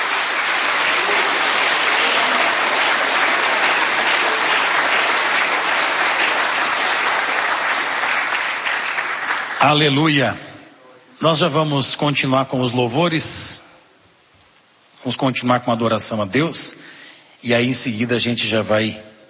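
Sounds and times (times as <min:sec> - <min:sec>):
audience applause: 0:00.0 - 0:09.9
speech: 0:09.6 - 0:10.5, 0:11.2 - 0:13.6, 0:15.0 - 0:19.1.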